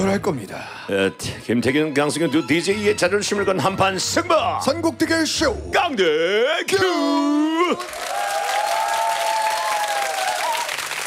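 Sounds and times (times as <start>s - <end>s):
speech: 0.1s - 8.1s
audience applause: 7.8s - 11.0s.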